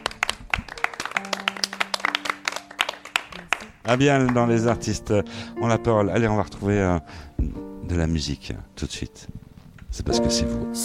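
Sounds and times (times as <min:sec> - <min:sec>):
applause: 0:00.0 - 0:04.9
speech: 0:03.9 - 0:10.8.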